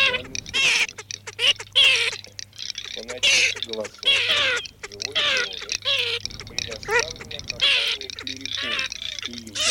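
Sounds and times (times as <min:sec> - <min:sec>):
garganey nasal quacking calls: 0:00.0 - 0:09.6.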